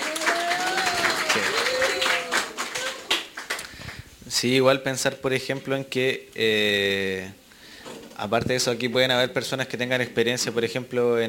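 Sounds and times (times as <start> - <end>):
audience applause: 0.0 - 4.0
speech: 4.4 - 7.4, 8.2 - 11.2.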